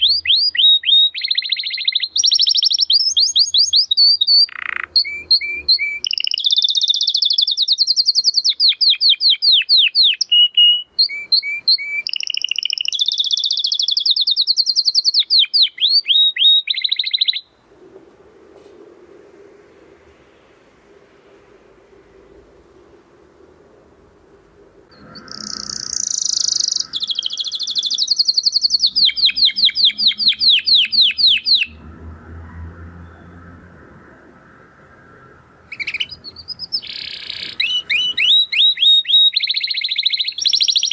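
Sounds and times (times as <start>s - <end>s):
canary singing: 0.0s - 17.6s, 24.9s - 31.9s, 35.0s - 40.9s.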